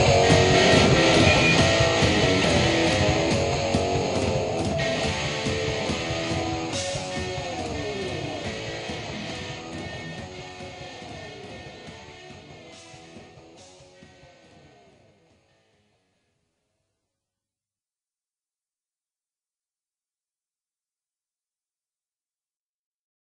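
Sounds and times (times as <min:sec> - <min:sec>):
instrumental music: 0:00.0 - 0:15.1.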